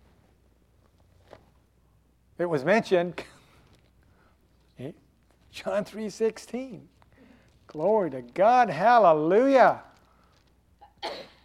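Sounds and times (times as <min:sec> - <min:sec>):
speech: 0:02.4 - 0:03.3, 0:04.8 - 0:07.0, 0:07.7 - 0:09.9
sneeze: 0:10.8 - 0:11.4.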